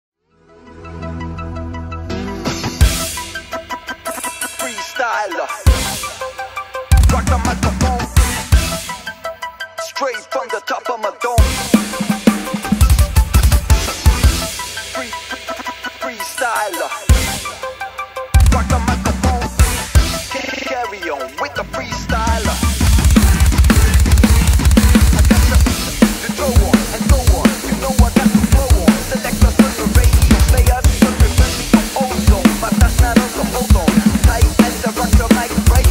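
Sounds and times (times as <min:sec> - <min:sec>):
drums playing: 0:02.4 - 0:09.3, 0:11.4 - 0:21.3, 0:22.1 - 0:35.9.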